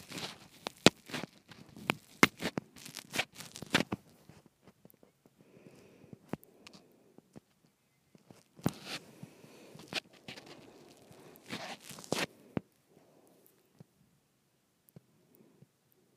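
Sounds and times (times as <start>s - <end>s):
microphone being twisted and handled: 0.0s - 5.4s, 6.1s - 12.4s.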